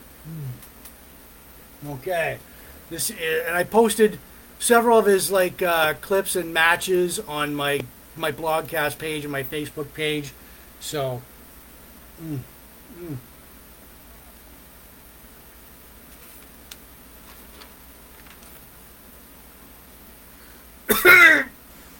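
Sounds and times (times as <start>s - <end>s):
speech: 1.8s - 11.3s, 12.2s - 13.3s
person coughing from smoking a strong cigar: 20.9s - 21.5s.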